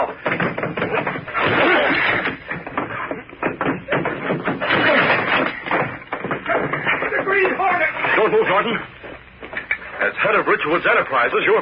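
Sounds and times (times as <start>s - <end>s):
old wooden door being forced open: 0.0s - 8.6s
speech: 10.6s - 11.6s.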